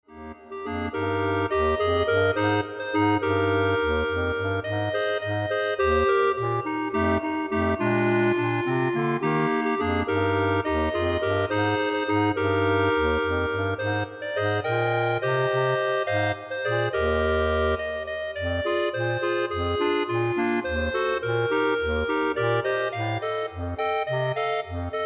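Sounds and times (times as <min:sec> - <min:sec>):
clarinet ensemble playing: 0:00.2 - 0:25.0.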